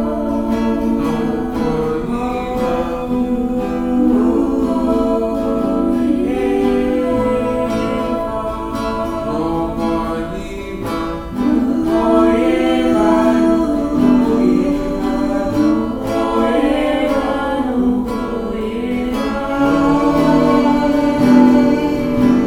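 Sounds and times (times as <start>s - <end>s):
voices singing syllables in harmony: 0.0s - 22.4s.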